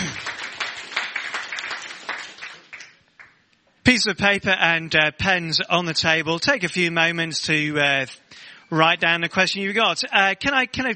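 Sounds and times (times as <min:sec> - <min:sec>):
audience clapping: 0:00.0 - 0:03.4
speech: 0:03.9 - 0:10.9.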